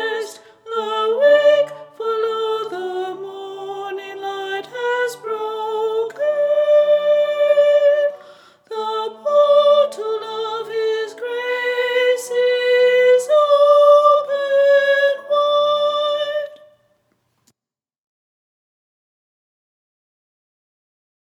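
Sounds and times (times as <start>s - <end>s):
soprano singing: 0.0s - 16.8s.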